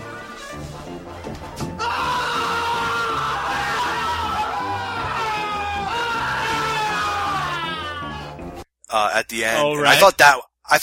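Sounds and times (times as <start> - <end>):
long exaggerated screaming: 1.8 - 8.4
speech: 8.9 - 10.7.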